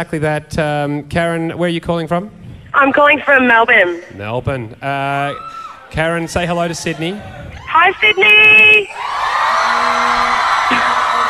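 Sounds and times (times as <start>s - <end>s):
speech: 0.0s - 9.4s
big crowd cheering and whooping: 5.3s - 11.2s
vuvuzela honk: 9.6s - 11.2s.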